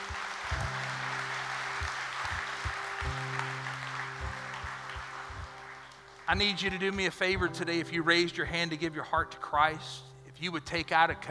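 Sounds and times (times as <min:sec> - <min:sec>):
audience clapping hands: 0:00.0 - 0:07.6
speech: 0:06.3 - 0:11.3.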